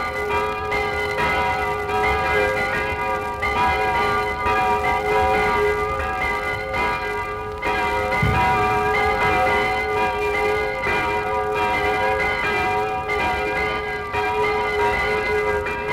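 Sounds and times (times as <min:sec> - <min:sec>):
bells: 0:00.0 - 0:15.9.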